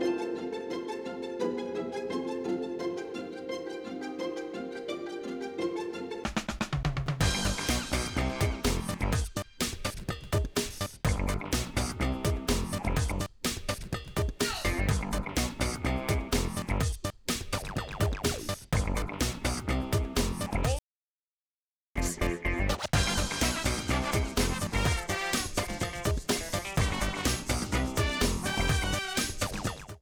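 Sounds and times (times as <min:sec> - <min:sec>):
music: 0:00.0 - 0:20.8, 0:22.0 - 0:30.0.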